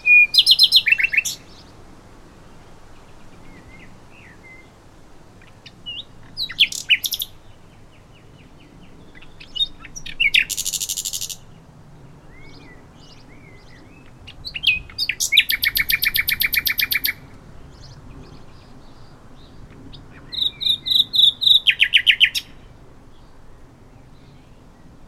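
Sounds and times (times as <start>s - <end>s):
common nightingale singing: 0.0s - 1.8s, 5.4s - 11.5s, 12.3s - 23.3s.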